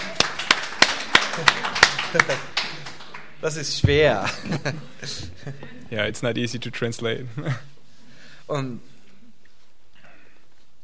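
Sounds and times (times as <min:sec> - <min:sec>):
rhythmic hand claps in a church community: 0:00.0 - 0:03.5
laughter: 0:01.3 - 0:02.8, 0:04.0 - 0:05.9
speech: 0:01.4 - 0:02.6, 0:03.4 - 0:07.7, 0:08.5 - 0:08.9.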